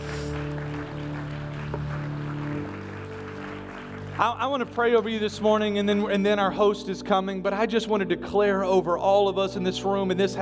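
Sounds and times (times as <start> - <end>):
audience clapping hands: 0.0 - 6.1
speech: 4.2 - 10.4.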